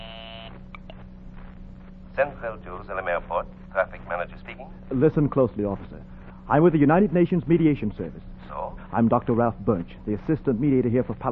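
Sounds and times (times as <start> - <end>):
buzzing telephone ring: 0.0 - 0.9
speech: 2.2 - 11.3.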